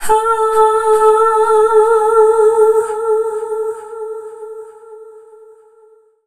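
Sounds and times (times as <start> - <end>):
female dance vocals: 0.0 - 4.6.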